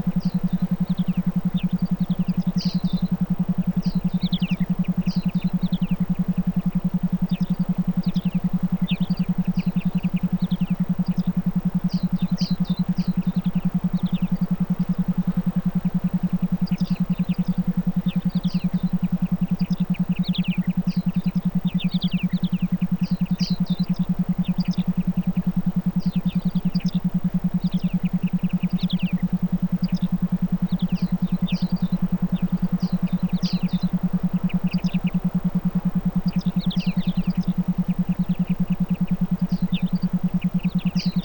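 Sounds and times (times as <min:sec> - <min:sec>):
forest ambience: 0:00.0 - 0:41.2.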